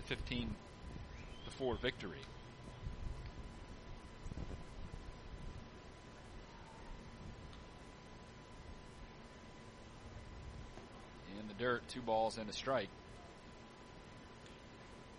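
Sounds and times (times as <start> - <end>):
speech: 0.1 - 0.7, 1.5 - 2.4, 11.4 - 13.0
wind blowing across a baseball field: 2.7 - 7.5.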